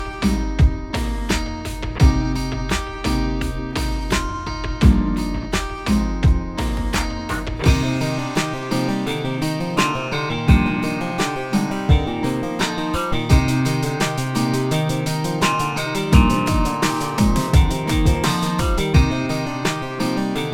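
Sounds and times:
guitar mix: 0.0s - 20.5s.

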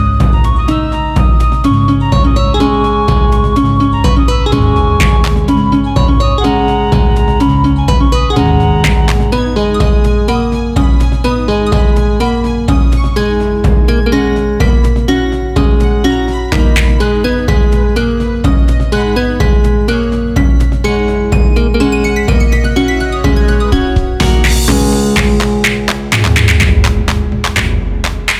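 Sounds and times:
sad village music: 0.0s - 28.3s
people clapping: 5.0s - 5.5s, 8.8s - 9.3s, 16.6s - 17.0s, 24.4s - 28.3s.

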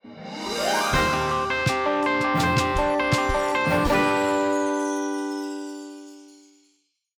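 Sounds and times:
fanfare: 0.1s - 5.1s.

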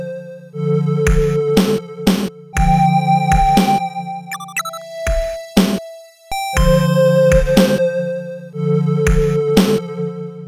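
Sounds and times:
chill chiptune music: 0.0s - 10.3s.

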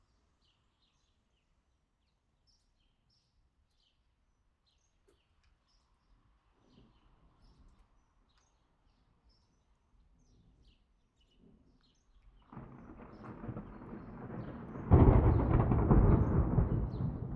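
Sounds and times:
thunder: 12.5s - 17.3s.

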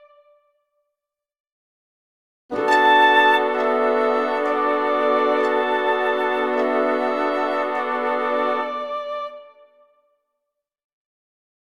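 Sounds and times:
emotional orchestral music: 2.5s - 9.8s.

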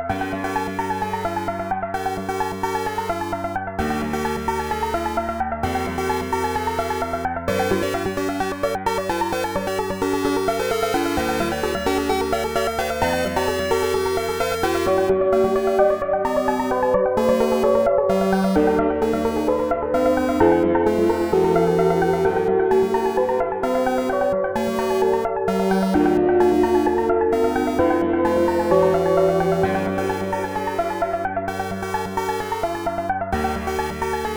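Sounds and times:
techno music: 0.1s - 34.3s.

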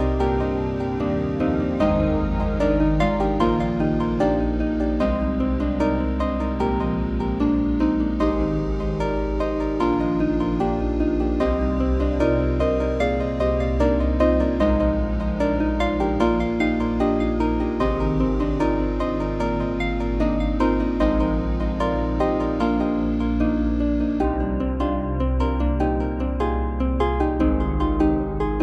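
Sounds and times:
space bass: 0.0s - 28.6s.

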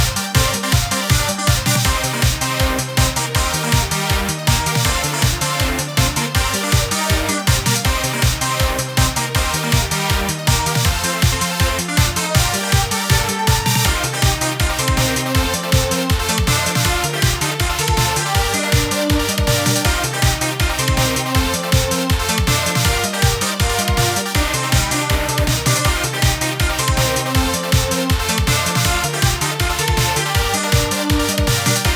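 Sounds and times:
electronic music at 160 bpm: 0.0s - 31.9s.

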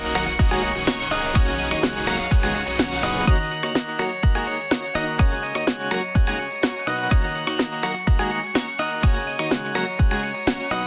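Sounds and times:
lively upbeat electronic chiptune music: 0.0s - 10.8s.

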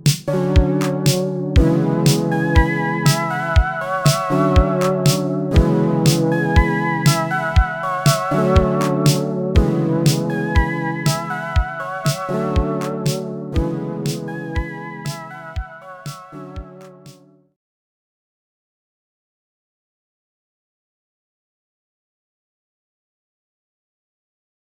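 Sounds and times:
chillwave music: 0.0s - 17.3s.

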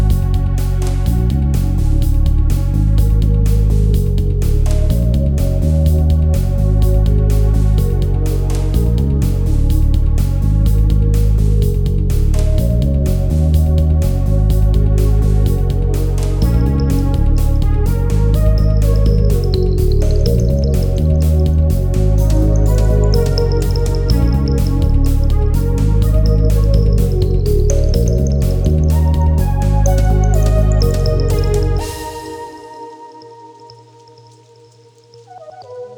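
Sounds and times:
gentle song: 0.0s - 35.9s.

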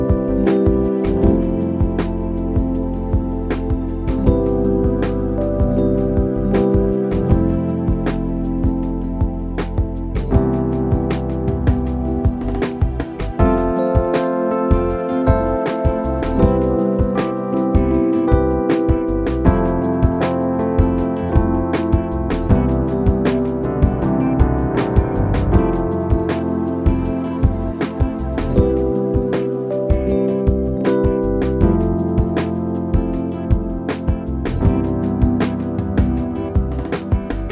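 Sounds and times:
chill music loop: 0.0s - 37.4s.

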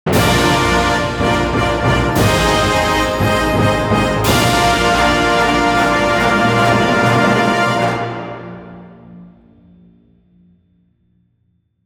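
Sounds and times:
fanfare: 0.1s - 9.1s.

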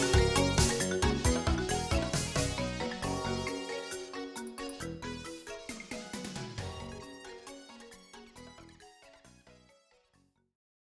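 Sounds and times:
bells ringing: 0.0s - 8.8s.

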